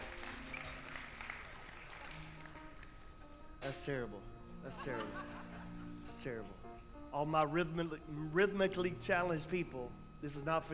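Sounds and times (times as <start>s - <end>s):
audience clapping hands: 0.0s - 3.0s
speech: 3.7s - 5.4s, 6.2s - 10.7s
laughter: 4.7s - 6.0s.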